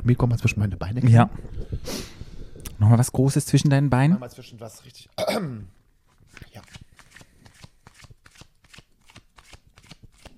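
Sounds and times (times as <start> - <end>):
speech: 0.0 - 2.1, 2.8 - 6.8
deck of cards being riffle-shuffled: 6.1 - 10.3.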